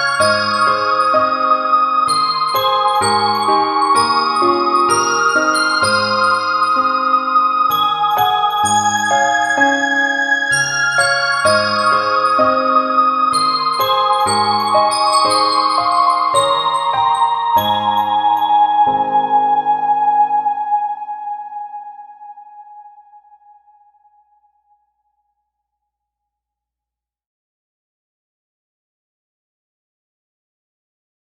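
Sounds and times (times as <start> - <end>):
slow lullaby: 0.0 - 23.8.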